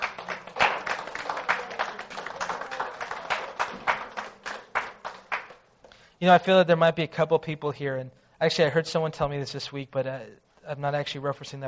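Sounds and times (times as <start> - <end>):
audience applause: 0.0 - 5.6
speech: 6.2 - 11.6.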